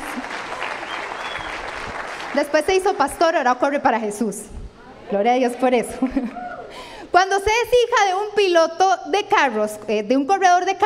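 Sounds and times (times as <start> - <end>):
audience applause: 0.0 - 2.8
speech: 2.3 - 6.5, 7.1 - 10.8.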